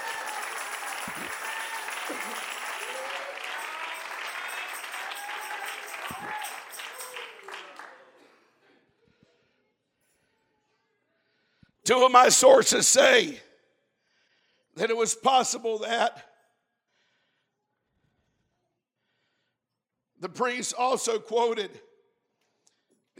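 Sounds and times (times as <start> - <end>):
audience clapping hands: 0.0 - 8.4
speech: 2.1 - 2.5, 11.9 - 13.5, 14.8 - 16.3, 20.4 - 21.9.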